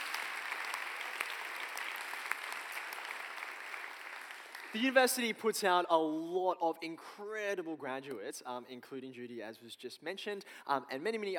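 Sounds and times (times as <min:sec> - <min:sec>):
audience applause: 0:00.0 - 0:05.0
speech: 0:04.7 - 0:11.3.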